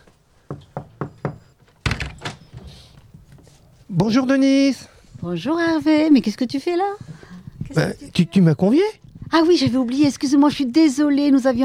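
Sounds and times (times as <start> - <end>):
knocking on a door: 0.5 - 2.4
thuds and clattering: 0.5 - 3.4
speech: 3.9 - 7.1, 7.8 - 11.6.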